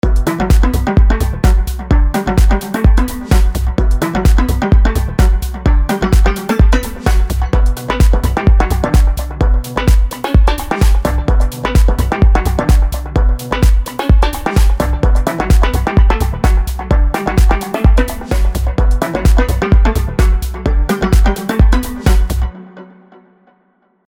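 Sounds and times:
mallets: 0.0s - 22.5s.

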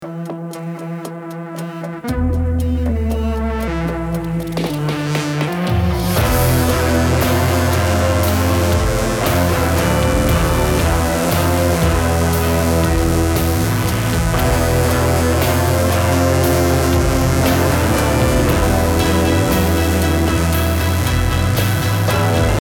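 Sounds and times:
trip hop music: 0.0s - 22.6s.

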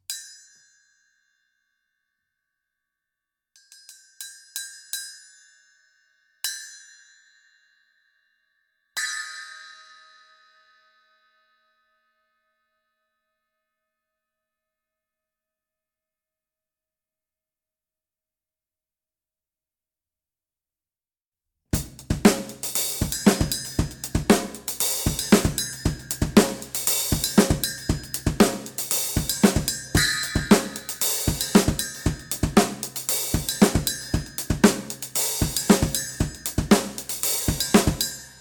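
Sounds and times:
bell: 3.6s - 12.6s, 22.5s - 38.4s.

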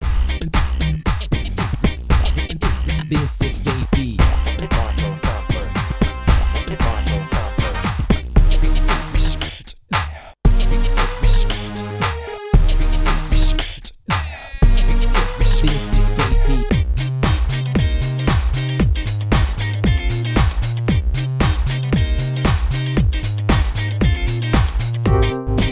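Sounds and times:
music pattern medley: 0.2s - 9.6s, 10.5s - 13.8s, 14.6s - 25.7s.

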